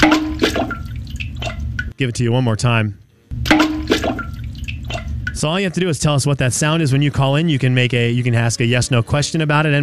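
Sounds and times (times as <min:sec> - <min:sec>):
small item dropped into toilet water: 0:00.0 - 0:01.9, 0:03.4 - 0:05.4
speech: 0:02.0 - 0:03.0, 0:05.4 - 0:09.8.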